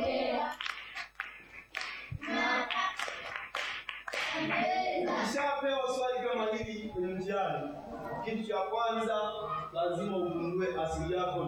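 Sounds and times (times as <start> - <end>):
children clapping in a classroom during a maths lesson: 0.0 - 5.3
speech: 5.4 - 11.4.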